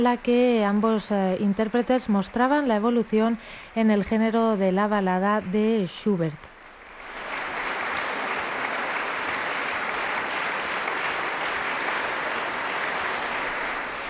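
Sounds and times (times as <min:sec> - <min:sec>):
speech: 0:00.0 - 0:06.5
concert audience applause: 0:06.6 - 0:14.0.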